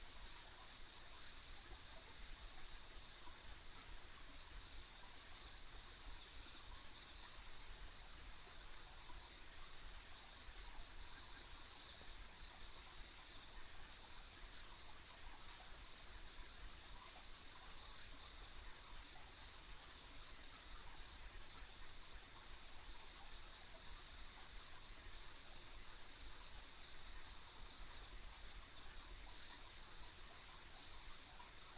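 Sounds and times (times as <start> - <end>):
insects calling in a high drone with chirps: 0.0 - 31.7.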